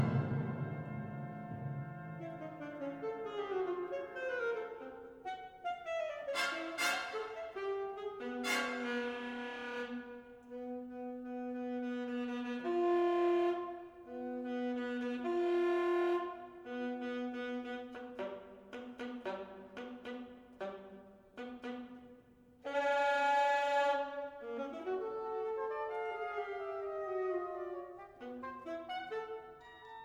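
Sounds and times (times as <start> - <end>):
alto saxophone solo: 0.0 - 30.0.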